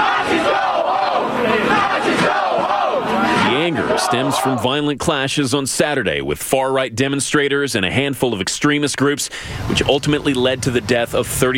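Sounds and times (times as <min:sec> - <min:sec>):
crowd of protesters shouting down a spokesman: 0:00.0 - 0:04.8
speech: 0:03.7 - 0:11.5.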